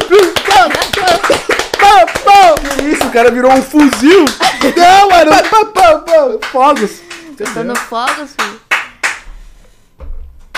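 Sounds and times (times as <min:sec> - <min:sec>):
audience applause sound effect: 0:00.0 - 0:09.2
speech: 0:03.1 - 0:08.6.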